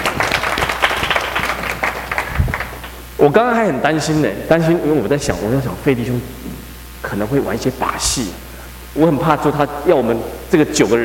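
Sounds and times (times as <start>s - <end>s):
audience applause: 0.0s - 3.0s
speech: 3.2s - 6.4s, 7.1s - 8.4s, 9.0s - 11.0s.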